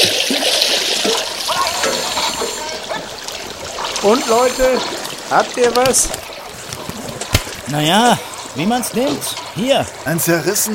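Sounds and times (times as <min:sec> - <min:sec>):
water splashing as divers surface: 0:00.0 - 0:10.7
speech: 0:04.0 - 0:06.3, 0:07.7 - 0:10.7.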